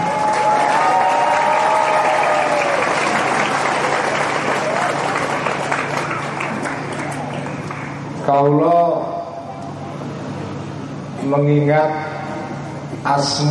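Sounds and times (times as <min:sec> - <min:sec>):
audience applause: 0:00.0 - 0:08.2
speech: 0:08.3 - 0:08.8, 0:11.3 - 0:12.1, 0:13.0 - 0:13.4.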